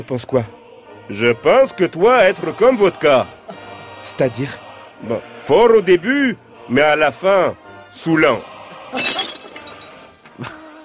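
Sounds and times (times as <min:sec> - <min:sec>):
speech: 0:00.0 - 0:03.4, 0:04.0 - 0:09.1
glass shattering: 0:09.0 - 0:10.0.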